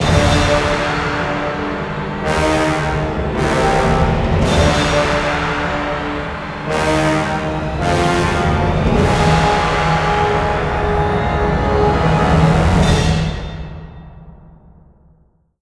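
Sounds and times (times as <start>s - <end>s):
musical stingers: 0.0s - 13.9s.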